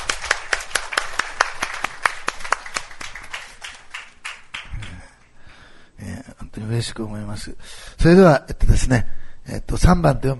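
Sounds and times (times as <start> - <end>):
audience clapping hands: 0.0 - 5.3
speech: 6.6 - 10.3.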